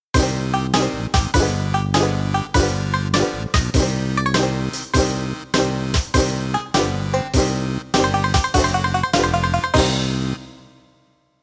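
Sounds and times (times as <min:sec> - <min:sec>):
game over jingle: 0:00.2 - 0:10.7.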